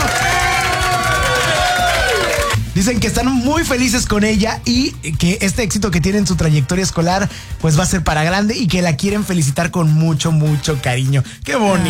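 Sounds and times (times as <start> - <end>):
applause: 0.0 - 2.6
cheering: 0.0 - 2.6
speech: 2.8 - 11.8.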